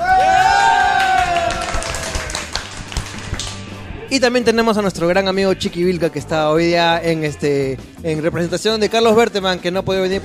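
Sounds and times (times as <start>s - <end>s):
audience applause: 0.0s - 3.7s
speech: 4.1s - 10.2s.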